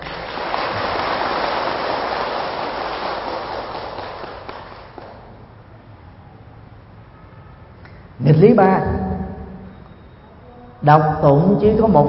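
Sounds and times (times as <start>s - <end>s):
audience applause: 0.0s - 5.4s
speech: 8.3s - 9.0s, 10.8s - 12.0s.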